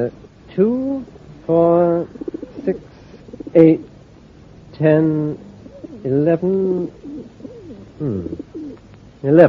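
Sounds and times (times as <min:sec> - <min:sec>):
speech: 0:00.0 - 0:02.9, 0:03.5 - 0:03.9, 0:04.8 - 0:07.1, 0:08.0 - 0:08.5, 0:09.2 - 0:09.4
pigeons cooing: 0:02.0 - 0:03.9, 0:05.3 - 0:08.8.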